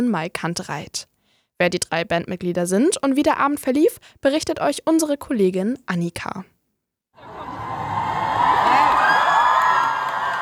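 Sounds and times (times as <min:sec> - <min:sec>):
speech: 0:00.0 - 0:06.5
crowd cheering band at concert: 0:07.2 - 0:10.4.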